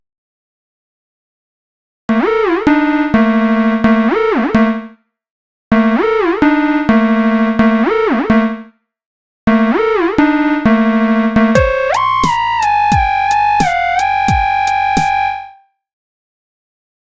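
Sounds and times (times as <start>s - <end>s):
synthesizer: 2.2s - 4.8s, 5.8s - 8.6s, 9.5s - 15.6s.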